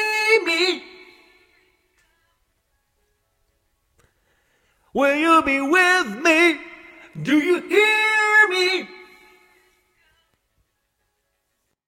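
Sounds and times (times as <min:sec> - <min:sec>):
a cappella rock singing at 150 bpm in C: 0:00.0 - 0:02.5, 0:04.9 - 0:10.5.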